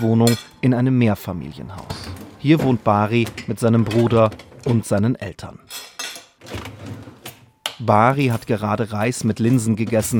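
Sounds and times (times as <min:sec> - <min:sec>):
dishes clattering while loading a dishwasher: 0:00.0 - 0:00.7, 0:01.7 - 0:05.0, 0:05.7 - 0:07.4
speech: 0:00.0 - 0:05.9, 0:07.8 - 0:10.1.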